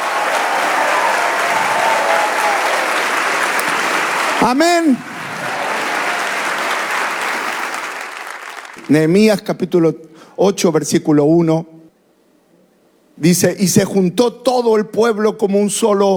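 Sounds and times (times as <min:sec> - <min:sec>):
audience applause: 0:00.0 - 0:09.1
speech: 0:04.4 - 0:05.1, 0:08.9 - 0:11.7, 0:13.2 - 0:16.1.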